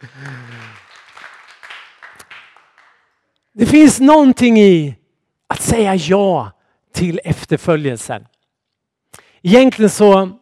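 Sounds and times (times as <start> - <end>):
audience applause: 0.0 - 3.0
speech: 3.6 - 5.0, 5.7 - 8.3, 9.4 - 10.4.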